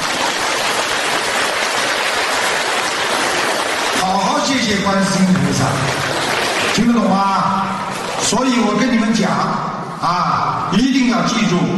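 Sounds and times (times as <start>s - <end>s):
large crowd applause: 0.0s - 8.3s
speech: 4.6s - 6.1s, 6.8s - 11.7s.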